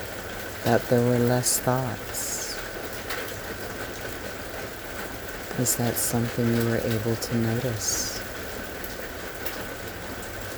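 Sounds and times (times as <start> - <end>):
rain: 0.0 - 10.5
speech: 0.6 - 2.3, 5.6 - 8.2.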